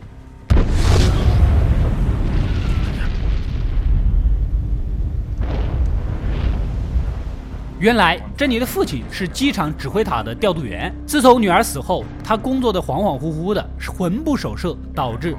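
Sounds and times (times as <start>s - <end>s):
crashing burst: 0.5s - 7.9s
loud explosive boom of two airplanes colliding: 0.5s - 10.4s
speech: 7.8s - 15.3s.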